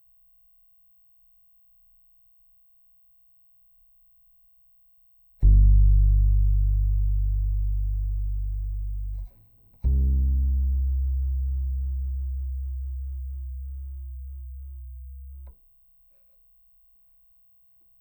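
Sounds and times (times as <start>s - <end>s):
bass guitar C note through DI: 5.4s - 15.5s.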